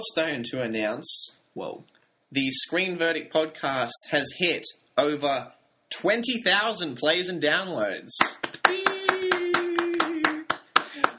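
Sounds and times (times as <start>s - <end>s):
speech: 0.0s - 8.9s
people clapping in a room: 8.2s - 11.1s.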